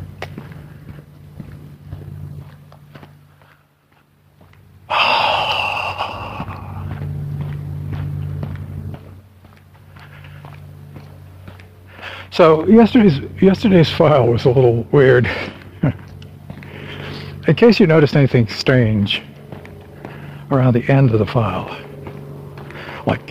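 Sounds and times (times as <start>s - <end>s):
footsteps of someone walking outdoors: 0.0s - 23.2s
speech: 12.4s - 16.0s, 17.5s - 19.3s, 20.5s - 21.9s, 23.1s - 23.2s.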